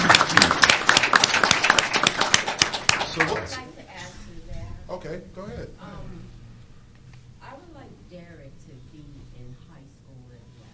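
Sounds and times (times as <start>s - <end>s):
hand clapping: 0.0s - 3.6s.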